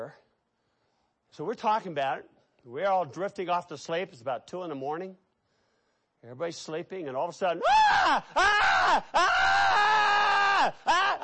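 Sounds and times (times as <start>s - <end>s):
speech: 0.0s - 0.2s, 1.3s - 5.2s, 6.2s - 9.9s, 10.6s - 11.2s
man imitating a man screaming in the mountains at night: 7.6s - 11.2s.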